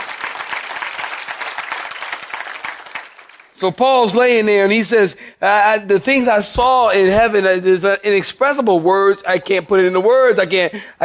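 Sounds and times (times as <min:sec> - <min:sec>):
audience clapping hands: 0:00.0 - 0:03.6
speech: 0:03.6 - 0:11.0.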